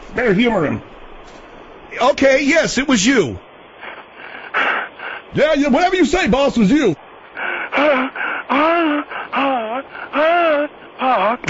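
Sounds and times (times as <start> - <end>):
speech: 0.2 - 1.0, 2.0 - 3.5, 5.3 - 7.0
caller's heavy moaning breaths on the phone: 3.7 - 5.4, 7.1 - 11.4.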